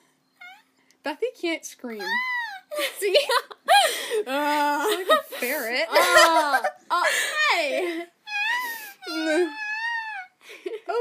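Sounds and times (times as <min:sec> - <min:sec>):
voice imitating baby whimpering: 0:00.4 - 0:00.8, 0:08.2 - 0:10.4
speech: 0:01.0 - 0:08.1, 0:09.1 - 0:09.6.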